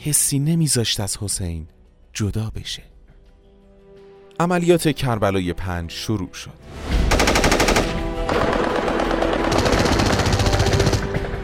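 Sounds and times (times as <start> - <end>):
speech: 0.0 - 2.9, 4.4 - 6.9
heavy gunfire in battle: 7.1 - 11.2.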